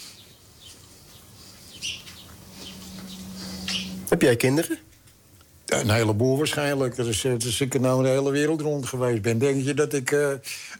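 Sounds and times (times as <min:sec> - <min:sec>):
young sparrows chirping outside open balcony doors of a flat: 0:00.0 - 0:04.1
steady low hum: 0:00.0 - 0:10.0
speech: 0:04.1 - 0:04.9, 0:05.7 - 0:10.7.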